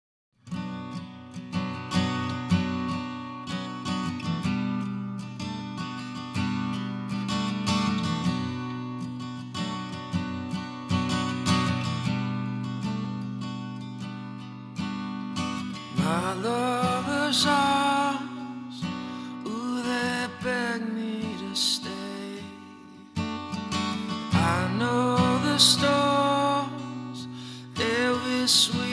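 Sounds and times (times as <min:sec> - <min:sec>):
acoustic performance: 0:00.5 - 0:28.9.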